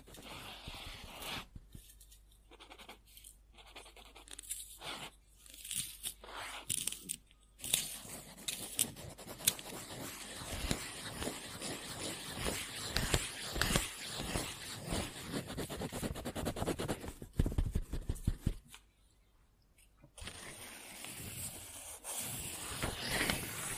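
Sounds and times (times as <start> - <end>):
pen or pencil scribbling on paper: 0.0 - 1.5, 2.5 - 5.2, 7.7 - 18.6, 20.2 - 23.7.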